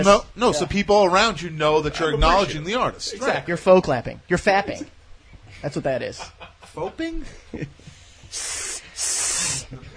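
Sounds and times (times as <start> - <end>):
speech: 0.0 - 5.0, 5.6 - 9.9
person hissing through their teeth: 8.2 - 9.8.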